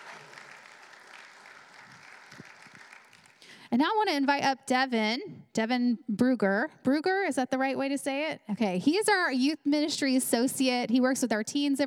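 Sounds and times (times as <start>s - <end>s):
audience applauding: 0.0s - 3.6s
speech: 3.7s - 11.8s.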